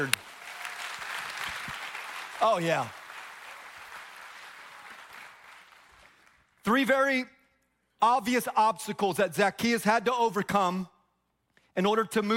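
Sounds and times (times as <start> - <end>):
speech: 0.0 - 0.3, 2.4 - 3.0, 6.6 - 7.4, 8.0 - 10.9, 11.8 - 12.3
audience clapping: 0.0 - 6.6.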